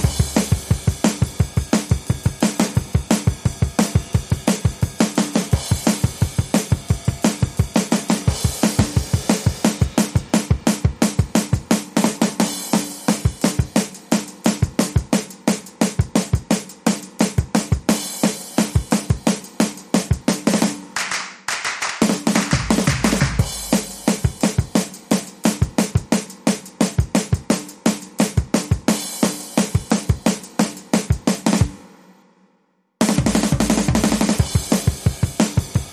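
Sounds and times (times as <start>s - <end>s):
drums: 0.0s - 35.9s
claps: 21.0s - 23.4s.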